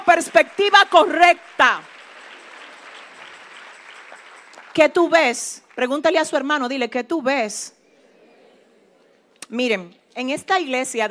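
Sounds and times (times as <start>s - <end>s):
audience applause: 0.0s - 6.0s
speech: 0.1s - 2.0s, 4.8s - 7.8s, 9.5s - 11.0s.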